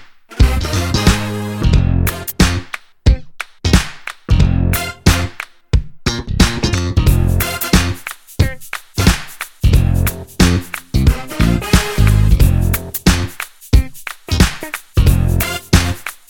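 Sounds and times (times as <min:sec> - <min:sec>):
swaggering music: 0:00.3 - 0:02.7, 0:04.4 - 0:05.5, 0:06.1 - 0:08.2, 0:09.0 - 0:13.3, 0:14.4 - 0:16.1.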